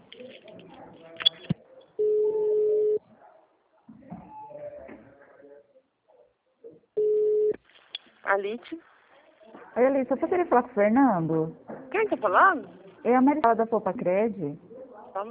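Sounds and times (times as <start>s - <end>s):
ringback tone of a telephone call being transferred: 2.0s - 3.0s, 7.0s - 7.5s
speech: 8.4s - 8.9s, 9.8s - 14.6s.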